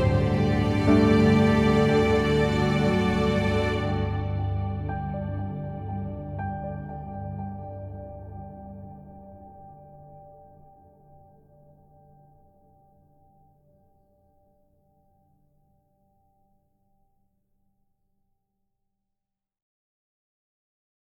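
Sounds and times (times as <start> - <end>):
strings: 0.0 - 9.2
piano: 0.0 - 15.2.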